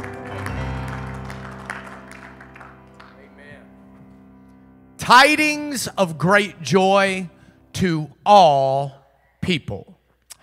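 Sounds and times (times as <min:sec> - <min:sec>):
audience hand clapping: 0:00.0 - 0:03.7
sustained organ-like chords: 0:00.0 - 0:09.2
speech: 0:05.1 - 0:10.4.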